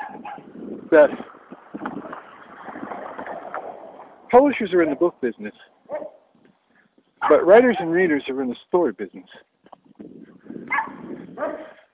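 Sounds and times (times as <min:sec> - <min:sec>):
dog barking on the street: 0:00.0 - 0:00.5, 0:05.9 - 0:06.2, 0:07.2 - 0:08.0, 0:10.7 - 0:11.9
speech: 0:00.9 - 0:01.3, 0:04.3 - 0:05.8, 0:07.3 - 0:09.5.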